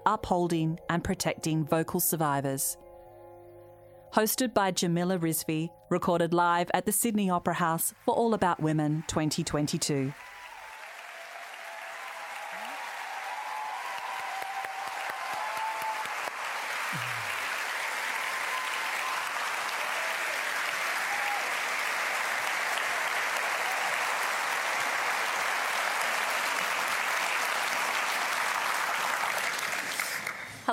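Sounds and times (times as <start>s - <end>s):
speech: 0.1s - 2.8s, 4.1s - 10.3s
audience applause: 8.5s - 30.6s.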